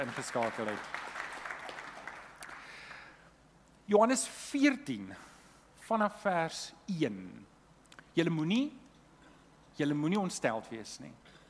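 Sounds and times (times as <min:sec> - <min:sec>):
speech: 0:00.0 - 0:01.0, 0:03.9 - 0:05.3, 0:05.9 - 0:07.5, 0:08.2 - 0:08.8, 0:09.8 - 0:11.2
crowd clapping hands: 0:00.0 - 0:03.0.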